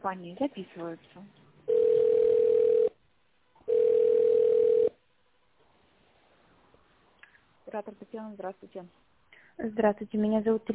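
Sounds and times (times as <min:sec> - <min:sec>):
speech: 0:00.0 - 0:01.4, 0:07.7 - 0:10.7
telephone ringback tone beeps: 0:01.7 - 0:02.9, 0:03.7 - 0:05.0.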